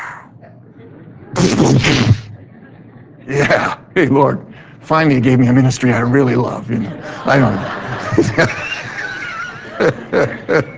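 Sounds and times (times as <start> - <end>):
laughter: 0.4 - 3.9, 6.8 - 10.7
voice imitating machine gun fire: 1.4 - 2.4
speech: 1.7 - 2.2, 3.3 - 8.6.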